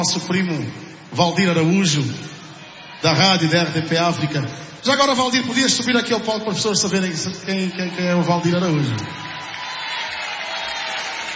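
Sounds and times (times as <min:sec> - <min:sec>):
speech: 0:00.0 - 0:02.4, 0:03.0 - 0:09.2
audience clapping at a live concert: 0:09.0 - 0:11.3.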